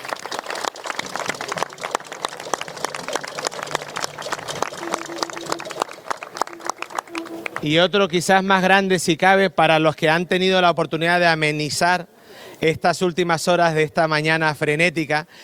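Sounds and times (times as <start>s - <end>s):
audience applause: 0.0s - 7.8s
speech: 7.6s - 15.4s.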